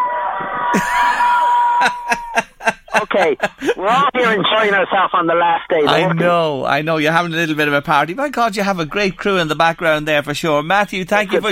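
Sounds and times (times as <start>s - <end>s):
group of people yelling together: 0.0s - 2.3s
laughter: 0.6s - 4.9s
speech: 1.8s - 11.5s.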